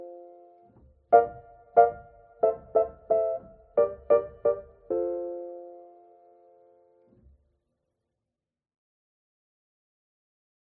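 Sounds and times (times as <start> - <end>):
piano cover: 0.0 - 7.2.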